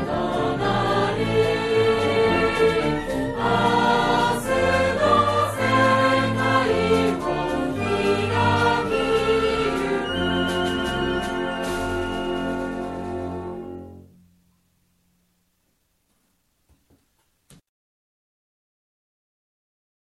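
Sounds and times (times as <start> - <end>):
brass band playing: 0.0 - 14.2.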